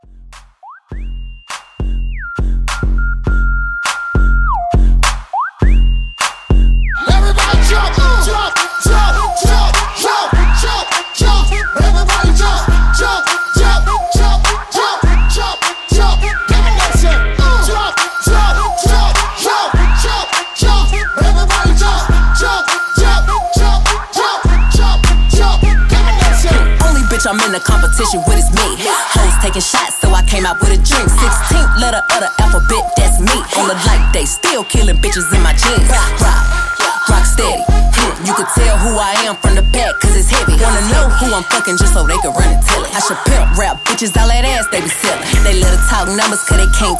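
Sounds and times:
drum loop at 102 BPM: 0:00.3 - 0:46.9.

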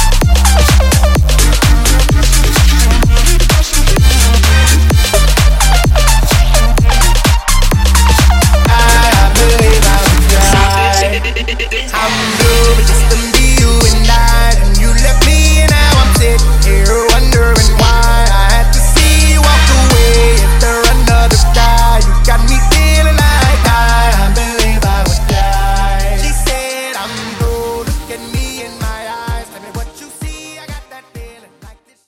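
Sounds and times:
EDM track: 0:00.0 - 0:31.9.

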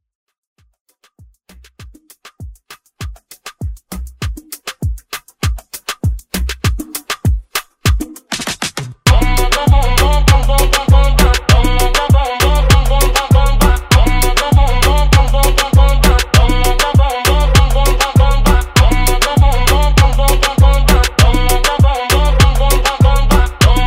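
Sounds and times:
moombahton intro music: 0:00.4 - 0:23.8.

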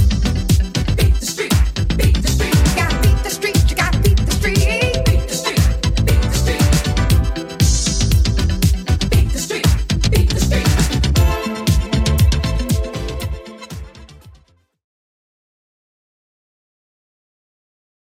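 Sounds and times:
1980s-style dance remix at 118 bpm: 0:00.0 - 0:14.4.

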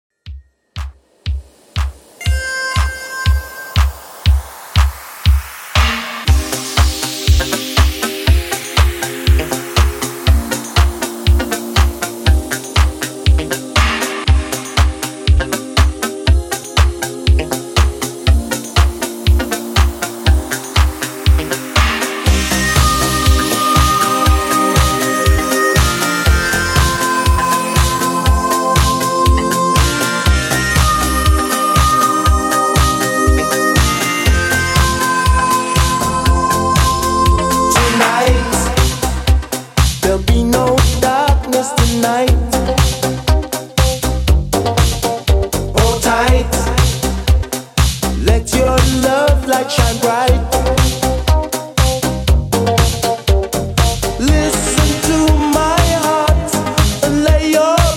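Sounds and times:
80s classic extended track at 120 BPM: 0:00.2 - 0:57.9.

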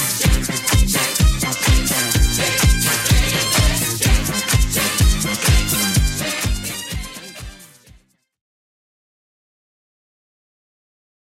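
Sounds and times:
70s drum loop at 126 bpm: 0:00.0 - 0:07.6.

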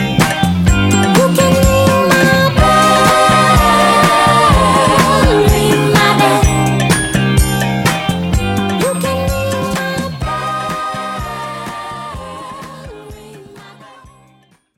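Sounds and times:
funk instrumental music: 0:00.0 - 0:13.9.

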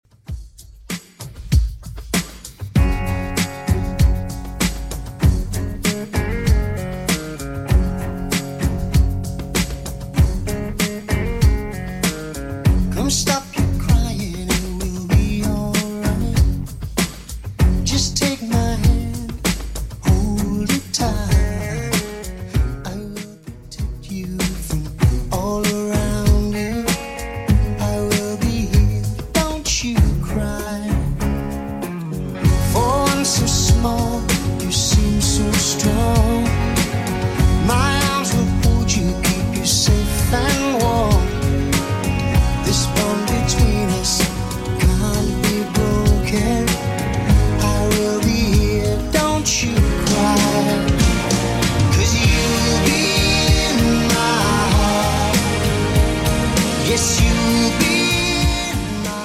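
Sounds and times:
90s style beat: 0:00.1 - 0:59.2.

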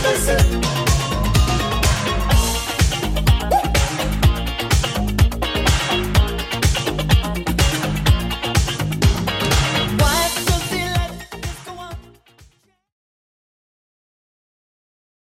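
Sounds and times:
80s Redrum drum machine beat: 0:00.0 - 0:12.1.

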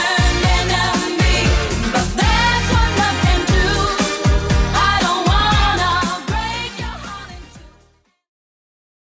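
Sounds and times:
90s style beat at 118 bpm: 0:00.0 - 0:07.2.

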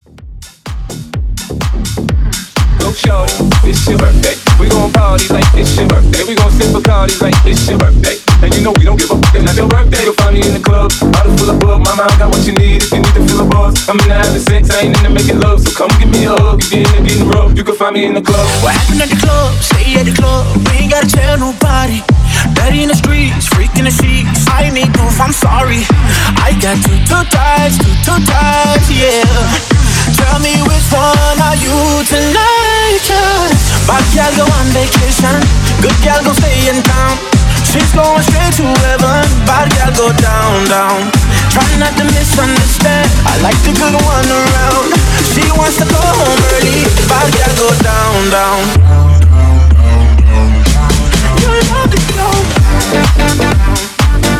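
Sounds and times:
hype intro music at 126 BPM: 0:00.0 - 0:54.3.

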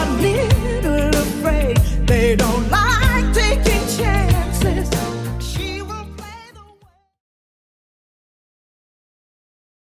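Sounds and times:
eighties style music at 95 bpm: 0:00.0 - 0:07.1.

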